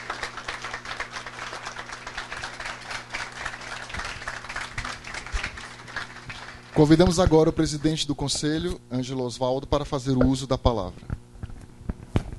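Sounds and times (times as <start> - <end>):
audience applause: 0.0 - 7.0
speech: 6.8 - 11.1.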